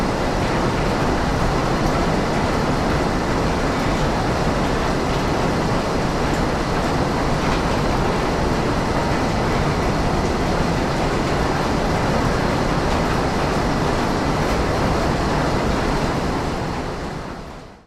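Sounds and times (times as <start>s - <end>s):
conveyor belt at an assembly plant: 0.0s - 17.8s
factory ambience at an assembly plant: 0.0s - 17.8s
train: 0.0s - 17.8s.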